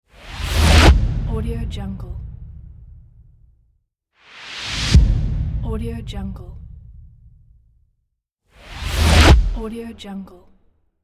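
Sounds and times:
futuristic swoosh impact: 0:00.2 - 0:03.3, 0:04.3 - 0:07.5, 0:08.6 - 0:09.6.

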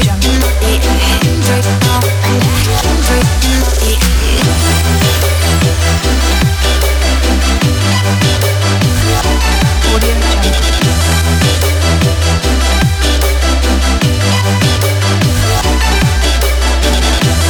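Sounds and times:
future bass music: 0:00.0 - 0:17.4.

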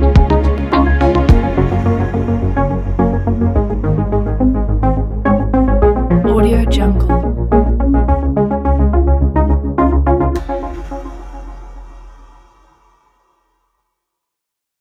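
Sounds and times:
uplifting technology music: 0:00.0 - 0:11.4.

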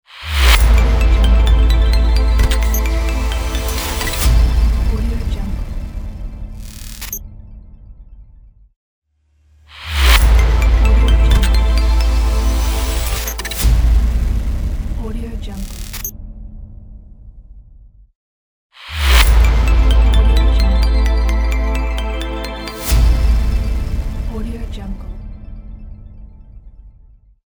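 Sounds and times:
technology logo sting: 0:00.2 - 0:05.2, 0:09.9 - 0:14.5, 0:18.9 - 0:24.4.

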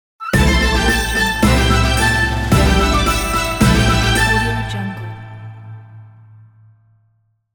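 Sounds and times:
Chinese logo jingle: 0:00.4 - 0:06.5.

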